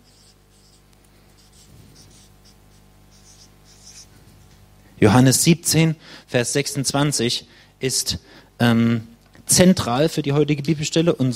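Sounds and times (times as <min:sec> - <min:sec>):
soft scratchy writing of a Bible verse reference: 0:00.0 - 0:04.6
speech: 0:05.0 - 0:11.3.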